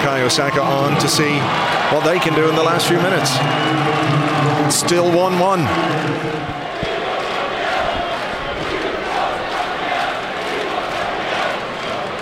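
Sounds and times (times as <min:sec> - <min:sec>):
speech: 0:00.0 - 0:06.8
football fans singing a protest chant: 0:02.8 - 0:12.2.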